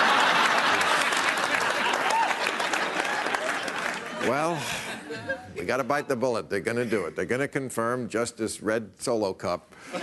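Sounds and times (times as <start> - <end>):
audience applause: 0.0 - 4.7
laughter: 0.0 - 6.1, 9.8 - 10.0
speech: 4.2 - 10.0.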